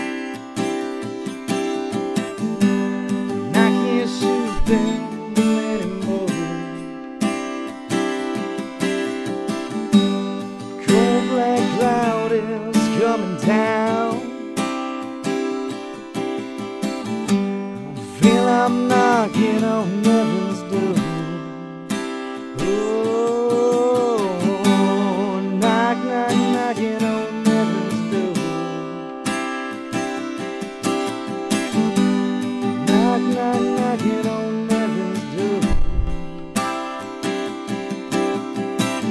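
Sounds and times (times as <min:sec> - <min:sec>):
acoustic guitar recorded in X-Y stereo: 0:00.0 - 0:39.0.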